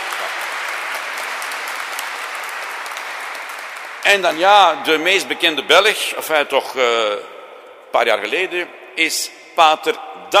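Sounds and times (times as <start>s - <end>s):
audience applause: 0.0s - 4.8s
speech: 4.1s - 7.3s, 7.9s - 10.3s.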